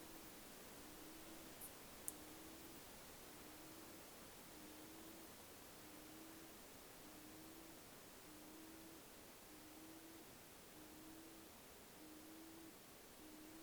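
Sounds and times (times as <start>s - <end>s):
steady hiss of overnight ambience at Menindee Lakes: 0.0s - 13.6s
faint high ticks: 1.6s - 2.3s.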